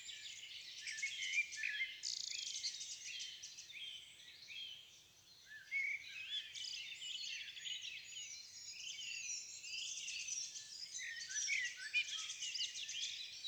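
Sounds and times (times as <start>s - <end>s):
birds in a forest: 0.0s - 13.4s.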